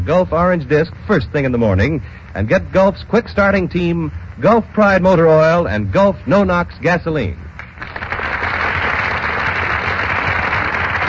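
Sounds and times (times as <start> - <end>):
speech: 0.0 - 7.5
burst of applause: 7.6 - 11.0.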